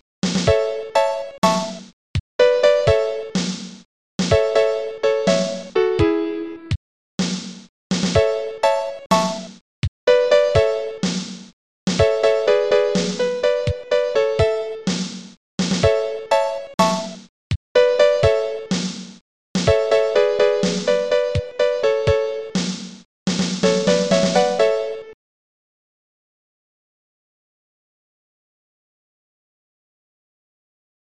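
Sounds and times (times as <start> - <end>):
piano piece: 0.5 - 1.8, 2.4 - 3.4, 4.3 - 6.7, 8.2 - 9.5, 10.1 - 11.0, 12.0 - 14.9, 15.8 - 17.2, 17.8 - 18.7, 19.7 - 22.6, 23.6 - 25.2.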